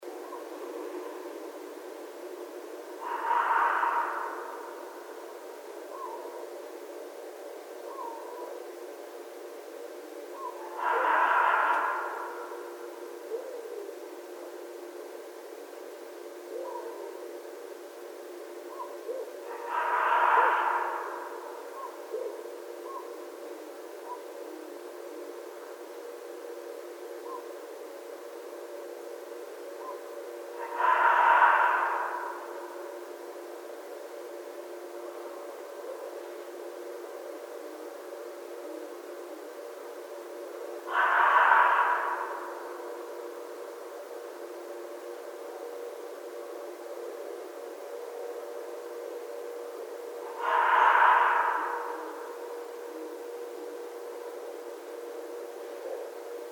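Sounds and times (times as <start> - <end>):
red fox calling: 3.0 - 6.5, 7.8 - 8.6, 10.3 - 14.0, 16.5 - 17.2, 18.6 - 23.2, 24.0 - 24.7, 27.2 - 27.6, 29.8 - 33.0, 40.8 - 43.6, 50.2 - 53.8.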